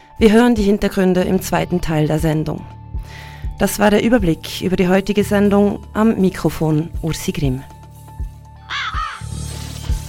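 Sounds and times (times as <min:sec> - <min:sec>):
speech: 0:00.2 - 0:07.7
raven caws in a radio jingle: 0:08.6 - 0:09.3.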